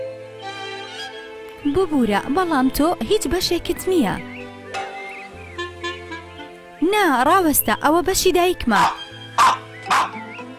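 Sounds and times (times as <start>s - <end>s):
speech: 1.6s - 4.4s, 6.9s - 9.6s
dog barking: 8.8s - 10.2s.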